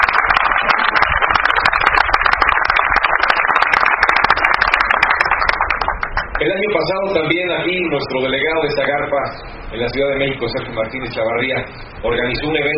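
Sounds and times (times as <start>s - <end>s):
crowd applauding loudly: 0.0s - 7.0s
speech: 6.8s - 12.7s.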